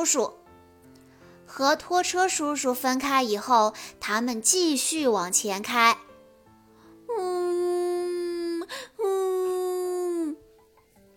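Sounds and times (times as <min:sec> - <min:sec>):
speech: 0:00.0 - 0:00.4, 0:01.5 - 0:06.1, 0:07.1 - 0:07.4
voice imitating a cement mixer truck character crying: 0:07.1 - 0:10.4.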